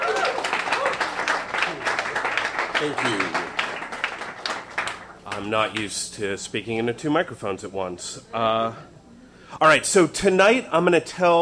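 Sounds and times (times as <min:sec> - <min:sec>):
audience applause at a live storytelling event: 0:00.0 - 0:05.8
speech: 0:02.8 - 0:03.4, 0:05.4 - 0:08.9, 0:09.5 - 0:11.4.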